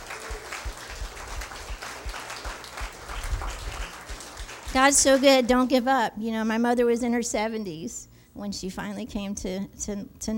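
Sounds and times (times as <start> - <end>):
audience applause: 0.0 - 5.6
speech: 4.7 - 10.3.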